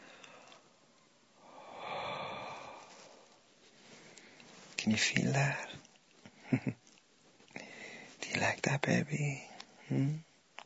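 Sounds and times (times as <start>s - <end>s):
slow hot exhale of breath: 1.4s - 4.4s, 7.6s - 8.1s
speech: 4.9s - 5.8s, 6.5s - 6.8s, 8.4s - 10.3s.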